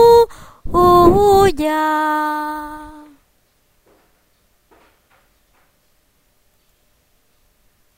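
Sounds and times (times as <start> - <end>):
soprano singing: 0.0 - 3.2.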